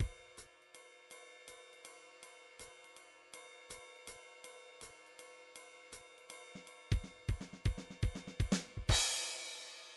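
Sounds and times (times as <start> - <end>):
jazz drum track: 6.9 - 9.9.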